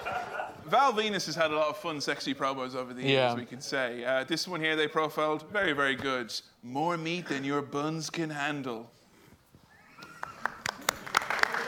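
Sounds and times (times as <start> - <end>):
speech: 0.7 - 9.0
scattered audience clapping: 10.0 - 11.6.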